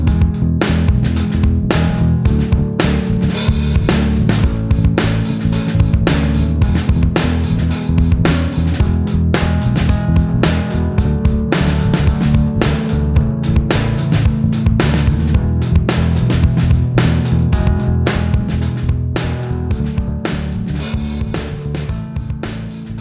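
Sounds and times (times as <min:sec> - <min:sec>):
slide backing music: 0:00.0 - 0:22.9.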